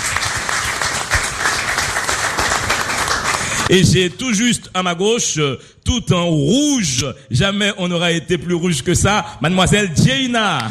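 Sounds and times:
audience applause: 0:00.0 - 0:03.7
speech: 0:03.7 - 0:10.6.

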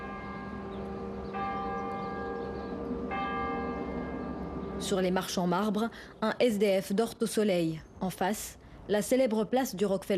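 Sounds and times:
St. Patrick's Cathedral church bell in New York striking noon: 0:00.0 - 0:05.3
speech: 0:04.8 - 0:10.1.

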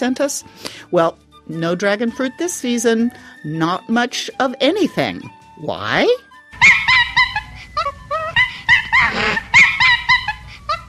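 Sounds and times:
speech: 0:00.0 - 0:06.8
monkeys chattering: 0:06.6 - 0:10.8.

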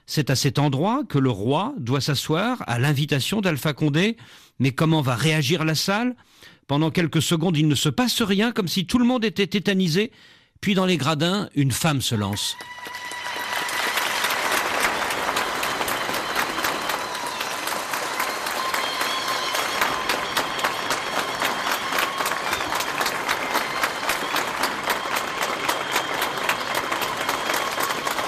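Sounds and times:
speech: 0:00.1 - 0:13.1
light crowd applause in stands: 0:12.3 - 0:28.2.

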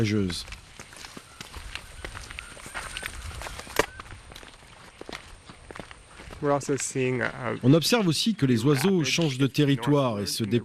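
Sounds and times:
speech: 0:00.0 - 0:00.6, 0:06.4 - 0:10.6
footsteps crunching through dry brush: 0:00.0 - 0:07.6.

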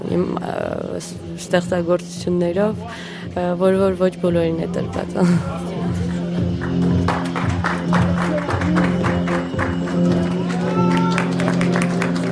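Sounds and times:
speech: 0:00.1 - 0:05.7
audience applause at a fashion show: 0:06.6 - 0:12.2.

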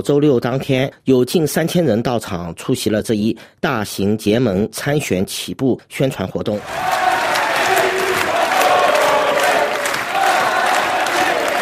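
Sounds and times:
speech: 0:00.0 - 0:07.1
large crowd cheering: 0:06.6 - 0:11.5.

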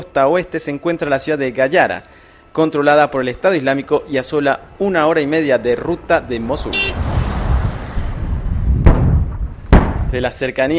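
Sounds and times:
speech: 0:00.2 - 0:07.1, 0:10.1 - 0:10.7
low rumbling noise: 0:05.6 - 0:10.2
large-caliber artillery fire by US forces near Makhmur: 0:07.0 - 0:10.4.

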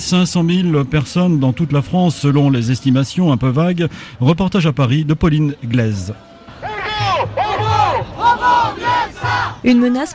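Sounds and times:
speech: 0:00.0 - 0:06.3, 0:09.6 - 0:10.1
street protest crowd chanting: 0:06.0 - 0:10.1.

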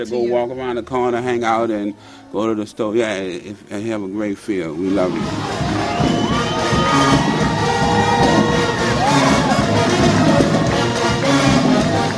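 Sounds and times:
speech: 0:00.0 - 0:07.3
large concert crowd cheering: 0:04.8 - 0:12.1.

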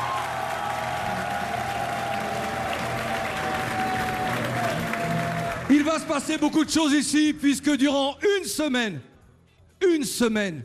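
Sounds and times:
audience applause: 0:00.0 - 0:06.4
speech: 0:05.7 - 0:09.1, 0:09.9 - 0:10.6.

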